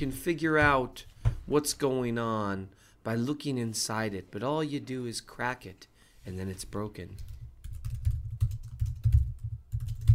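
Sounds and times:
speech: 0:00.0 - 0:07.3
loud typing on a computer keyboard: 0:07.2 - 0:10.1.

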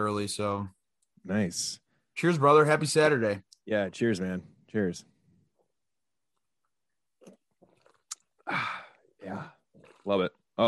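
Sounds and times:
speech: 0:00.0 - 0:05.1, 0:08.5 - 0:10.6
person chugging a beer: 0:07.2 - 0:10.1.

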